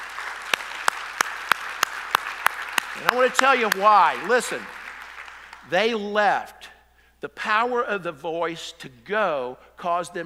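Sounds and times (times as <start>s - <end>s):
audience round of applause: 0.0s - 5.6s
speech: 3.0s - 4.8s, 5.6s - 6.6s, 7.2s - 10.2s.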